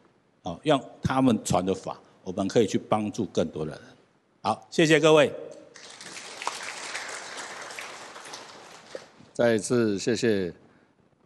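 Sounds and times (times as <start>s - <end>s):
speech: 0.4s - 5.9s, 9.4s - 10.6s
audience applause: 5.8s - 9.3s.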